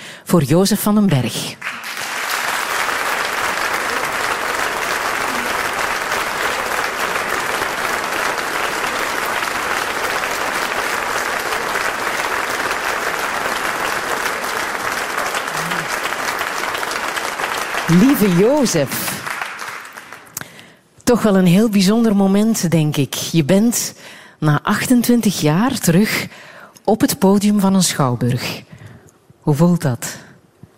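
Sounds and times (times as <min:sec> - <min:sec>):
speech: 0:00.3 - 0:01.7, 0:17.9 - 0:19.2, 0:21.1 - 0:28.6, 0:29.5 - 0:30.1
warm applause from theatre audience: 0:01.6 - 0:20.4.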